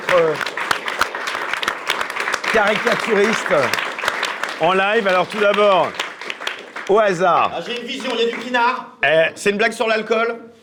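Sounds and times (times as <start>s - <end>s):
audience applause: 0.0s - 8.8s
speech: 0.2s - 0.6s, 2.5s - 3.9s, 4.6s - 6.0s, 6.9s - 10.6s.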